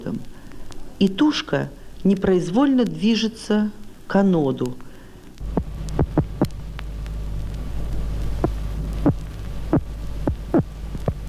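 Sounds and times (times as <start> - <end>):
constant low electrical hum: 0.0 - 11.2
speech: 0.1 - 0.4, 1.0 - 4.8
electric catfish defensive electric pulses: 5.4 - 11.2.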